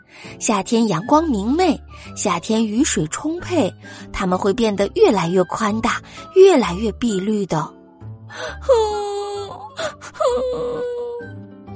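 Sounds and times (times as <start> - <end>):
speech: 0.2 - 9.1, 9.8 - 11.4
soft crying: 8.4 - 11.3.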